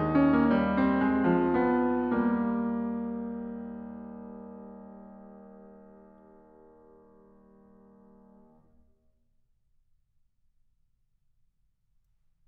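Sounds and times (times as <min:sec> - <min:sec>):
keyboard fugue in E-flat major: 0:00.0 - 0:08.4.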